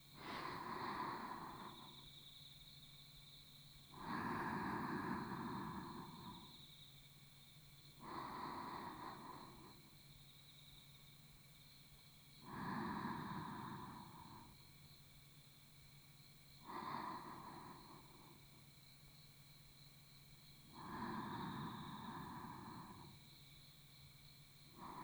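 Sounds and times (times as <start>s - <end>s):
sleep breathing on the right side: 0.2s - 2.0s, 4.0s - 6.6s, 8.0s - 9.9s, 12.4s - 14.6s, 16.6s - 18.4s, 20.7s - 23.3s, 24.7s - 25.0s.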